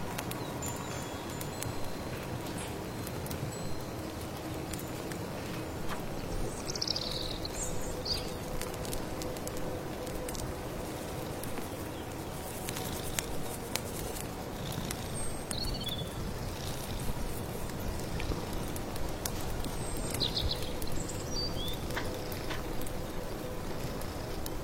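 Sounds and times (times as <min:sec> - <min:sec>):
firewood crackling: 0:00.0 - 0:24.6
rustling rain in a late autumn forest: 0:00.0 - 0:24.6
birdsong: 0:00.2 - 0:04.1, 0:04.8 - 0:08.6, 0:11.6 - 0:17.0, 0:19.6 - 0:23.1.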